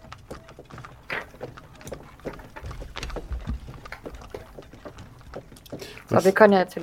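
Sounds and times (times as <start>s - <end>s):
horse-drawn cart rumbling away: 0.0s - 6.8s
speech: 6.1s - 6.8s.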